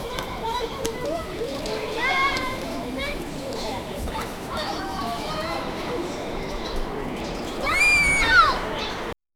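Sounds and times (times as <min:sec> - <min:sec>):
children: 0:00.0 - 0:09.2.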